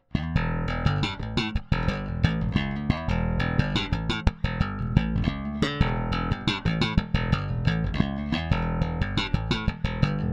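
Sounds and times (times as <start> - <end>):
direct bass: 0.0 - 10.3.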